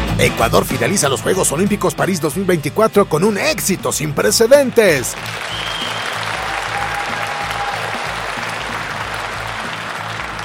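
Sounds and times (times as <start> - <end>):
speech: 0.2 - 5.9
applause: 4.4 - 10.4.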